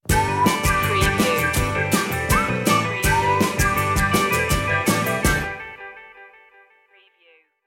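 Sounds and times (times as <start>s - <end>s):
upbeat music stinger: 0.1s - 5.7s.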